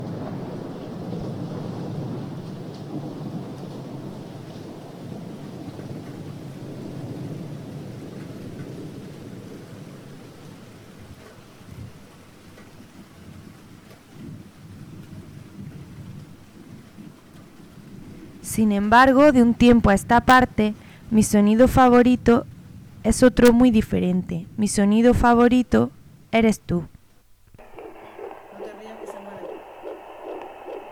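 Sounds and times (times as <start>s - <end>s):
deep thunder rumbling and rolling: 0.0s - 12.1s, 13.2s - 26.3s, 27.5s - 30.9s
heavy rain pattering on a roof: 0.0s - 18.5s
speech: 18.5s - 26.9s.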